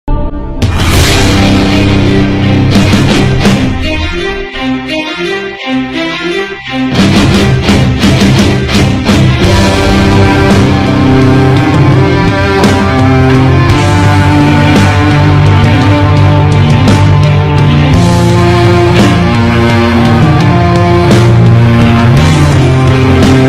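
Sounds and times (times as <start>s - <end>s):
metal music: 0.1s - 23.4s.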